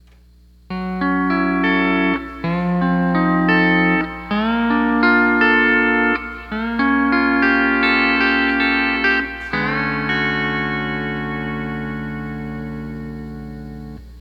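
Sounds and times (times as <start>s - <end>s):
nightlife music: 0.7s - 14.0s.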